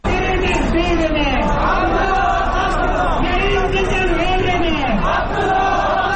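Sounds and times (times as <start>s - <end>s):
thousands of protesters marching in Kabul chanting and shouting: 0.0s - 6.1s.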